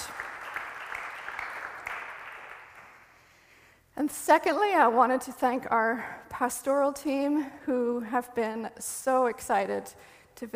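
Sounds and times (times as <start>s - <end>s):
audience clapping: 0.0s - 3.3s
speech: 4.0s - 10.5s.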